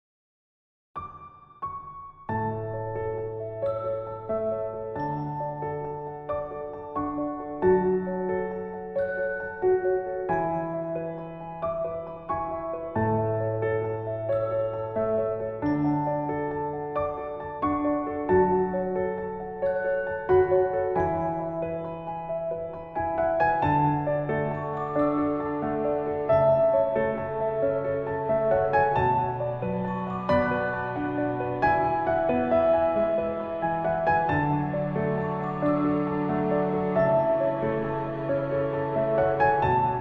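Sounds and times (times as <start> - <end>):
piano: 1.0 - 39.9.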